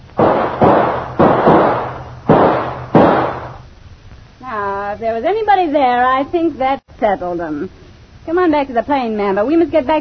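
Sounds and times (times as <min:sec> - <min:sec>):
gunshot: 0:00.2 - 0:03.6
speech: 0:04.9 - 0:09.9.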